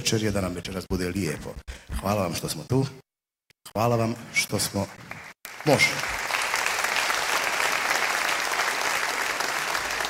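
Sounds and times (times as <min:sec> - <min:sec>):
speech: 0:00.0 - 0:03.0, 0:03.7 - 0:06.1
concert audience applause at a sevdalinka evening: 0:05.0 - 0:10.0.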